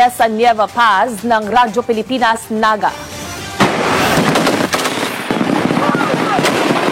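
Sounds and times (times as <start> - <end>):
speech: 0.0 - 3.2
rapid gunfire from army ground forces during a live-fire exercise in Camarines Sur: 3.6 - 6.8.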